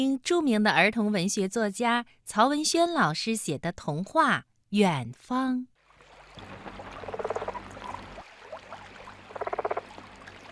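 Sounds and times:
speech: 0:00.0 - 0:05.7
frog: 0:07.0 - 0:08.2, 0:09.2 - 0:10.0.

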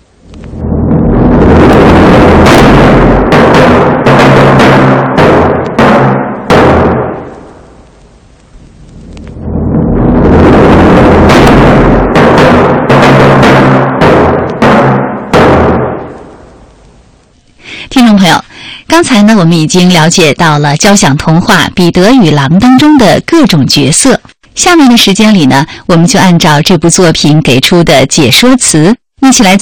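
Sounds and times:
timpani strikes imitating gunshots: 0:00.0 - 0:07.9, 0:08.6 - 0:16.8
speech: 0:19.1 - 0:29.5.

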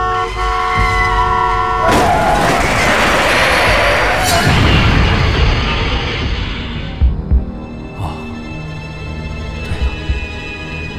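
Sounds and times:
out-of-control truck horn blaring: 0:00.0 - 0:02.5
heavy roaring rush with rumbling and rattling: 0:01.8 - 0:10.8.

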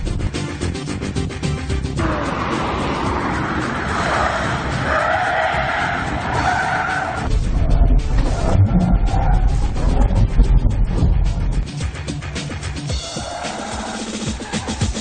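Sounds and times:
car engine roaring: 0:00.0 - 0:14.9
car tires squealing during a 70 km/h lane change: 0:02.0 - 0:10.2, 0:13.0 - 0:14.9.

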